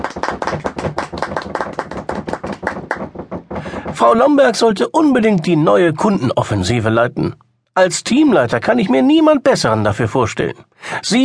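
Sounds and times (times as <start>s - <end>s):
applause: 0.0s - 3.9s
speech: 4.0s - 11.2s.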